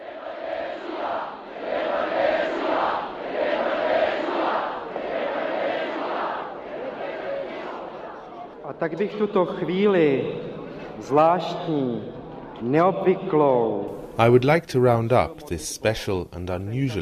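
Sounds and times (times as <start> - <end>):
crowd roaring and chanting at a demonstration: 0.0 - 8.6
speech: 8.8 - 17.0.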